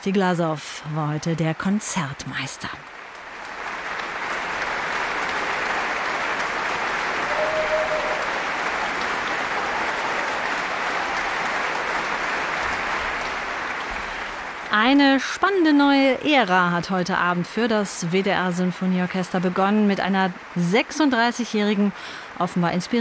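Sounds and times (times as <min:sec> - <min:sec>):
speech: 0:00.0 - 0:03.0, 0:14.7 - 0:23.0
concert audience applause: 0:02.9 - 0:15.7.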